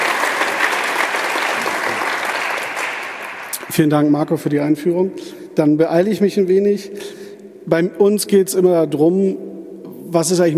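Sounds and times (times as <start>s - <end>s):
audience applause: 0.0s - 3.8s
speech: 3.8s - 9.5s, 10.1s - 10.5s.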